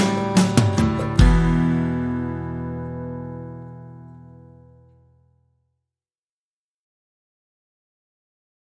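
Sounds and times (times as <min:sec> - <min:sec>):
acoustic rhythm guitar: 0:00.0 - 0:05.4.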